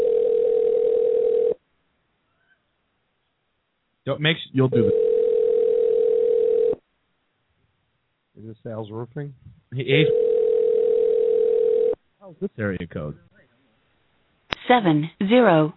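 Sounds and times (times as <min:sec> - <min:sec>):
telephone dial tone: 0:00.0 - 0:01.6, 0:04.8 - 0:06.8, 0:10.1 - 0:12.0
speech: 0:04.0 - 0:05.1, 0:08.5 - 0:10.3, 0:12.3 - 0:13.3, 0:14.7 - 0:15.7.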